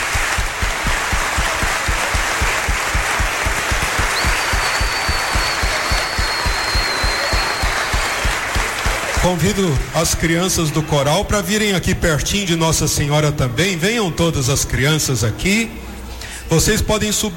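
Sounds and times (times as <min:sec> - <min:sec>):
round of applause: 0:00.0 - 0:10.3
speech: 0:09.2 - 0:15.9, 0:16.5 - 0:17.3.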